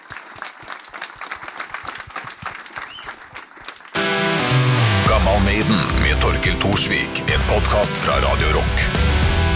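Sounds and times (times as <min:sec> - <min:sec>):
audience applause: 0:00.0 - 0:04.1
speech: 0:05.4 - 0:09.4.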